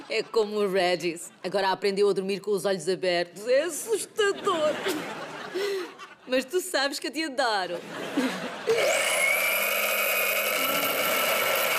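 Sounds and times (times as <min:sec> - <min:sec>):
laughter: 0:00.0 - 0:01.7, 0:04.2 - 0:06.4, 0:07.7 - 0:09.3
speech: 0:00.1 - 0:09.1
electric coffee grinder grinding coffee beans: 0:08.8 - 0:11.7.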